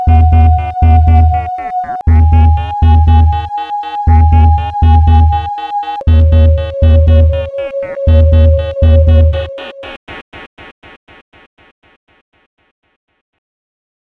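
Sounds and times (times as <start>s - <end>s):
sine wave tones: 0.0s - 9.9s.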